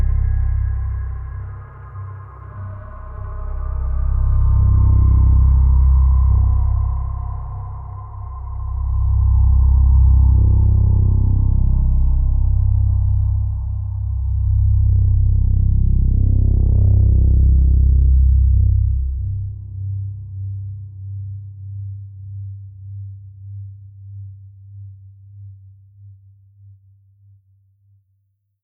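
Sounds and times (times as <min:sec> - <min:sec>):
horror music: 0:00.0 - 0:20.4.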